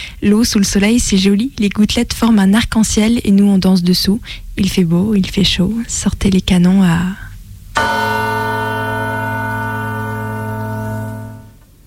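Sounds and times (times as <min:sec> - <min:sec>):
speech: 0:00.2 - 0:08.0
doorbell ringing: 0:07.8 - 0:11.6.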